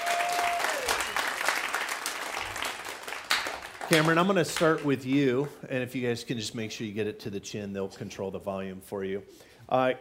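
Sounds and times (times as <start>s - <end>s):
audience applause: 0.0s - 5.5s
speech: 3.9s - 9.9s.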